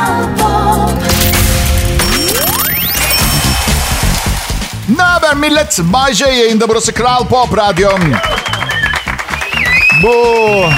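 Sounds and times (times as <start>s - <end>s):
tonal sounds: 1.1s - 5.7s
digital canned applause and cheering sound effect: 2.5s - 5.7s, 7.4s - 10.7s
speech: 5.3s - 8.6s, 10.0s - 10.7s.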